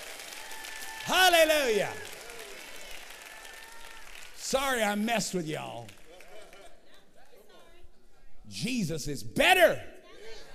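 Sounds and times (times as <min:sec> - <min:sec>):
audience clapping: 0:00.0 - 0:07.0
speech: 0:01.0 - 0:02.1, 0:04.5 - 0:06.0, 0:08.5 - 0:09.9.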